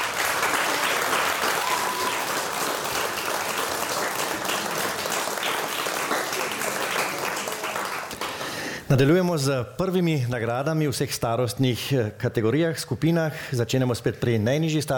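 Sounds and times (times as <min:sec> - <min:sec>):
audience applause: 0:00.0 - 0:08.8
speech: 0:08.9 - 0:14.9.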